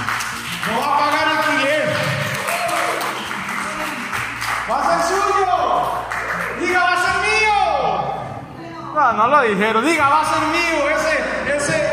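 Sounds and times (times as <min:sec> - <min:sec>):
audience clapping hands: 0:00.0 - 0:07.2
speech: 0:09.1 - 0:11.8.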